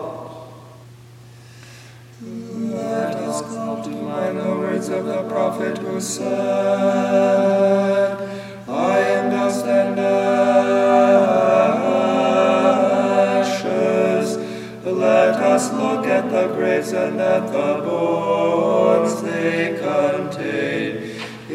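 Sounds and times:
choir chanting stichera: 2.2 - 21.5.

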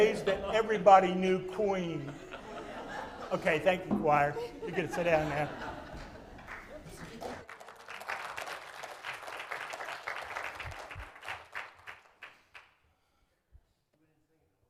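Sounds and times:
speech: 0.0 - 2.3, 3.3 - 5.7
laughter: 0.0 - 7.4
audience applause: 5.4 - 12.7.

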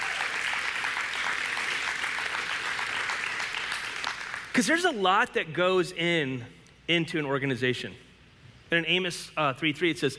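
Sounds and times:
audience applause for hardworking staff: 0.0 - 4.5
speech: 4.6 - 8.0, 8.7 - 10.1.

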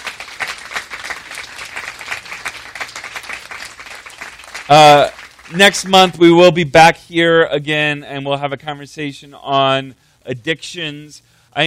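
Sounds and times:
round of applause for panel: 0.0 - 5.6
speech: 4.7 - 11.6.

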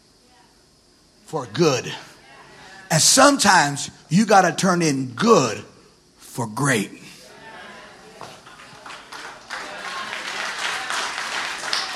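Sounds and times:
speech: 1.3 - 2.1, 2.9 - 5.7, 6.4 - 7.0
sparse audience clapping: 8.2 - 11.9.

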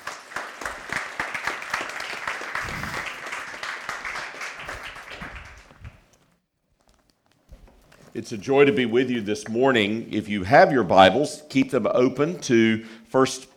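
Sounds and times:
church congregation applauding to welcome a speaker: 0.0 - 6.1
speech: 8.2 - 13.5.

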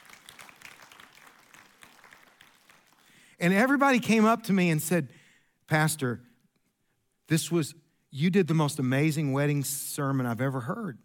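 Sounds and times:
audience applause: 0.0 - 3.2
speech: 3.4 - 6.3, 7.3 - 11.0.

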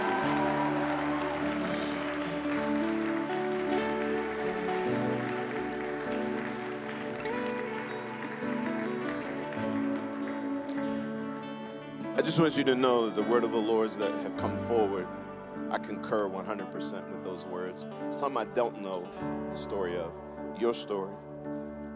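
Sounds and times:
audience clapping: 0.0 - 14.6
speech: 12.3 - 21.9.

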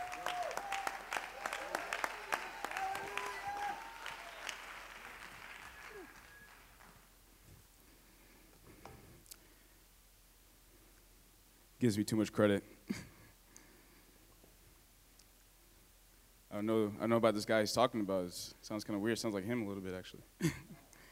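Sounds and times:
audience clapping hands: 0.0 - 7.2
speech: 11.8 - 13.1, 16.6 - 20.7.

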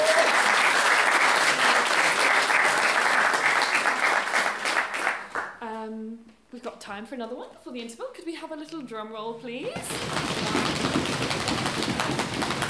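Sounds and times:
audience applause: 0.0 - 5.6, 9.8 - 12.6
speech: 6.8 - 12.6.

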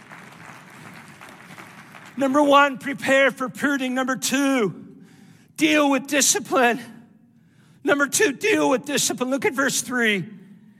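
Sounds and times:
audience clapping in praise: 0.0 - 2.6
speech: 2.2 - 4.8, 5.6 - 7.0, 7.8 - 10.4.

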